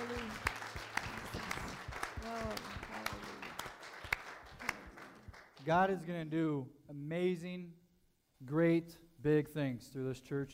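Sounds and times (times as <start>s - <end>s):
audience clapping: 0.0s - 6.1s
speech: 5.6s - 7.8s, 8.4s - 10.5s.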